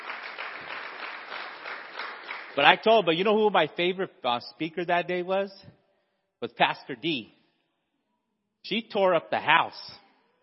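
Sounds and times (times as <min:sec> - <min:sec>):
audience clapping: 0:00.0 - 0:02.9
speech: 0:02.6 - 0:05.8, 0:06.4 - 0:07.4, 0:08.6 - 0:10.0.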